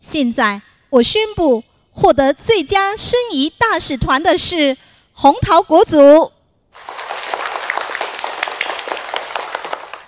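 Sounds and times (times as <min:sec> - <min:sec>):
speech: 0:00.0 - 0:06.4
children applauding: 0:06.8 - 0:10.0.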